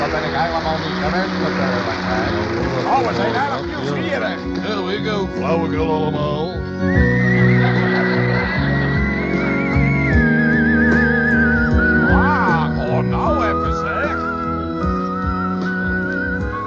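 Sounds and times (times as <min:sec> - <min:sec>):
laughter: 0:00.0 - 0:05.4, 0:07.0 - 0:10.0, 0:11.9 - 0:14.2
busy noise: 0:00.0 - 0:16.6
speech: 0:00.1 - 0:07.3
person whistling on the left side: 0:06.7 - 0:16.6.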